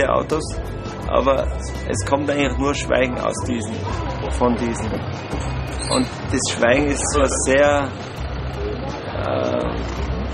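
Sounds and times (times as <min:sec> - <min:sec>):
speech: 0:00.0 - 0:08.2, 0:09.2 - 0:10.1
tractor overtaking on a road: 0:00.0 - 0:10.3.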